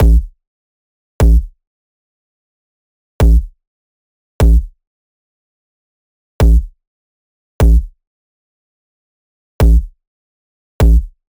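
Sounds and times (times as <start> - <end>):
bass loop at 150 bpm: 0.0 - 0.3, 1.2 - 1.4, 4.4 - 4.6, 6.4 - 6.6, 7.6 - 7.8, 9.6 - 9.8, 10.8 - 11.0.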